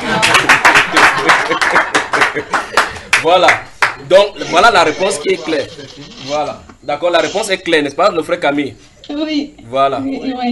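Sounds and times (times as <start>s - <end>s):
laughter: 0.0s - 3.2s, 4.5s - 6.3s
audience applause at a religious teaching session: 0.0s - 4.0s
speech: 3.2s - 10.4s.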